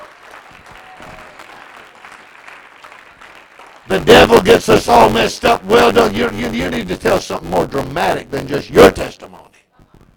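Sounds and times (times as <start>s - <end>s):
crowd clapping hands: 0.0s - 6.4s
speech: 3.9s - 9.2s.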